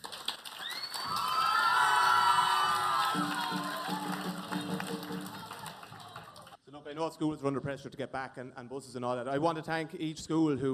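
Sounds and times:
audience applause: 0.0 - 6.6
speech: 7.0 - 10.7.

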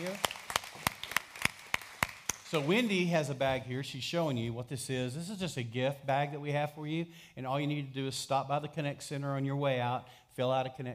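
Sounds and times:
audience clapping for first time guests: 0.0 - 3.2
speech: 2.5 - 10.9.

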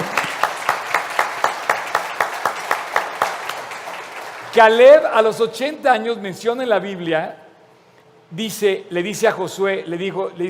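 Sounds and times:
audience applause: 0.0 - 4.8
speech: 4.6 - 7.4, 8.3 - 10.4.

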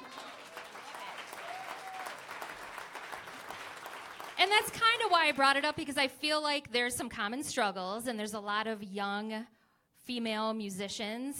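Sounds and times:
audience clapping: 0.0 - 5.9
speech: 4.4 - 11.3.

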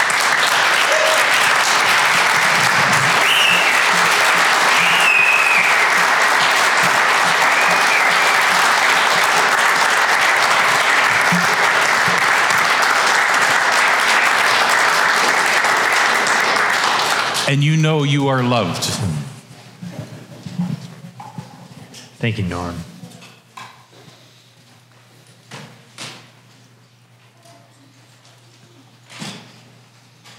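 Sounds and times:
audience applause: 0.0 - 17.5
speech: 17.5 - 19.3, 22.2 - 22.9.

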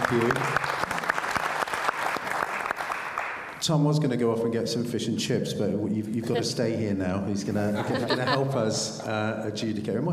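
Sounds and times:
audience applause: 0.0 - 3.6
speech: 0.1 - 0.7, 3.6 - 10.1
laughter: 7.5 - 9.2.

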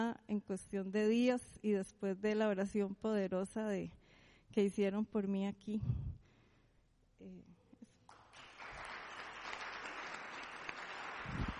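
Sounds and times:
speech: 0.0 - 6.1, 7.2 - 7.5
audience applause: 8.1 - 11.5.

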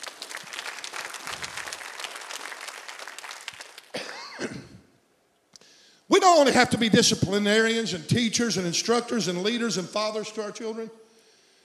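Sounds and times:
audience clapping: 0.0 - 4.3
speech: 6.2 - 11.0.

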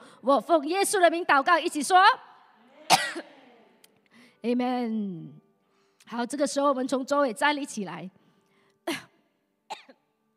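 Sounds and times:
speech: 0.2 - 2.3, 3.2 - 3.4, 4.4 - 5.4, 6.1 - 8.2
cough: 2.9 - 3.3, 8.9 - 10.1.

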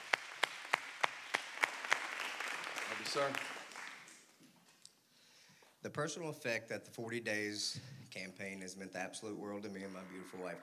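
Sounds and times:
audience clapping: 0.0 - 4.4
speech: 3.0 - 3.6, 5.8 - 10.6.

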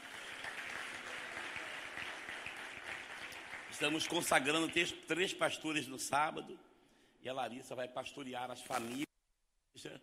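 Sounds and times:
audience applauding: 0.0 - 4.9
speech: 3.8 - 9.1, 9.8 - 10.0.

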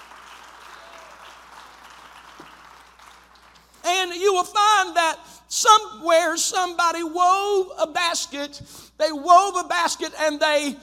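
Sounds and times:
audience clapping hands: 0.0 - 3.8
speech: 4.0 - 10.8.

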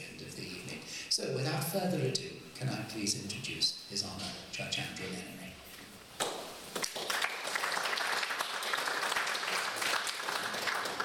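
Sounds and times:
speech: 1.2 - 5.6
audience clapping: 6.2 - 11.0.

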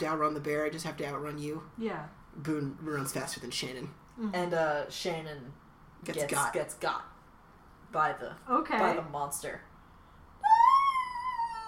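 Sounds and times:
speech: 0.0 - 7.1, 7.9 - 9.7
scream sound effect: 10.4 - 11.6.

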